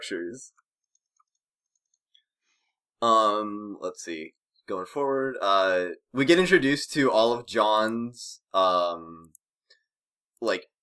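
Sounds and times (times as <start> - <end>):
speech: 0.0 - 0.6, 3.0 - 9.4, 10.4 - 10.7
computer mouse clicks: 0.6 - 2.3.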